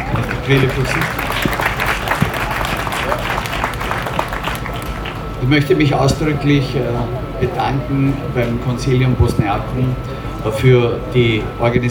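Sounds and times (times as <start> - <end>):
audience applause: 0.0 - 7.9
speech: 0.5 - 1.3, 5.4 - 11.8.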